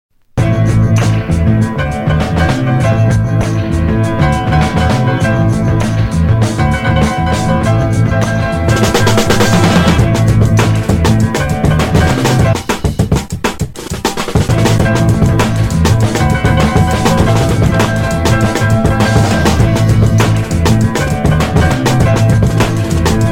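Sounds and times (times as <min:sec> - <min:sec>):
instrumental music: 0:00.4 - 0:23.3.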